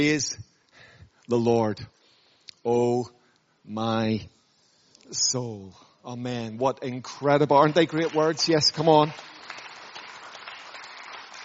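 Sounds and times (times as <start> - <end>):
speech: 0.0 - 0.4, 1.3 - 2.0, 2.6 - 4.4, 5.1 - 9.6
audience applause: 7.4 - 11.4.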